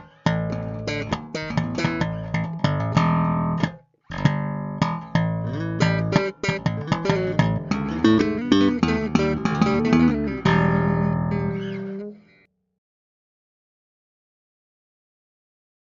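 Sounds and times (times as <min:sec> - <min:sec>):
improvised music: 0:00.0 - 0:12.4.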